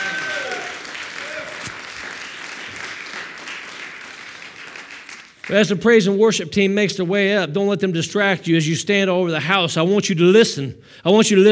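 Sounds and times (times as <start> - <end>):
audience applause: 0.0 - 5.5
speech: 5.5 - 11.5.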